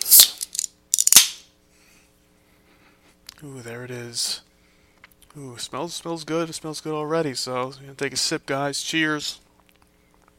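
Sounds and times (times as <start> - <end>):
malt liquor can cracked open: 0.0 - 1.4
speech: 3.4 - 4.4, 5.3 - 9.4.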